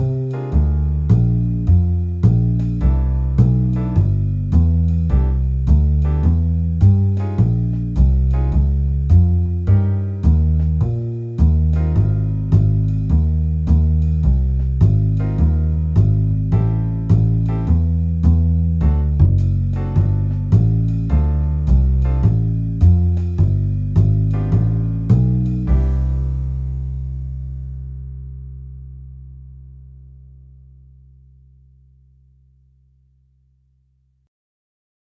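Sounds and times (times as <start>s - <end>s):
jazz guitar figurations: 0.0s - 27.5s.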